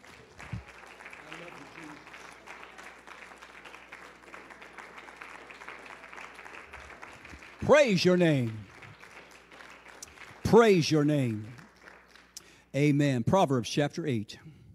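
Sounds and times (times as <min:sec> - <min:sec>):
audience clapping hands: 0:00.0 - 0:12.7
speech: 0:07.7 - 0:08.7, 0:10.5 - 0:11.6, 0:12.7 - 0:14.5.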